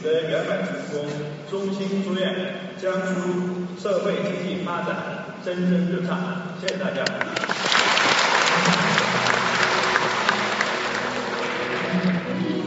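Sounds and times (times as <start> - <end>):
speech: 0.0 - 9.4
audience applause after a speech at a conference closing session: 7.2 - 12.5.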